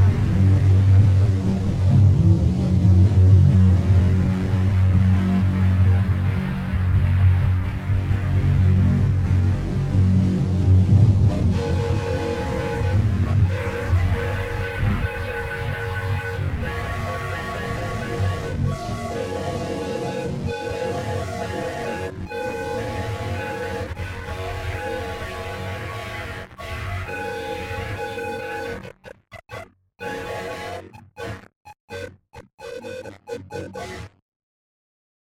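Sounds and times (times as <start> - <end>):
processed guitar: 0.0 - 34.2.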